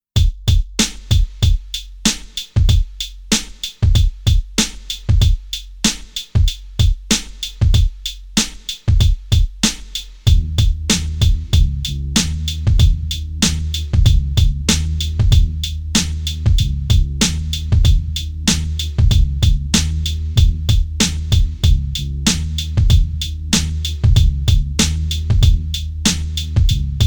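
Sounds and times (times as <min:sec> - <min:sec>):
instrumental music: 0:00.2 - 0:27.0.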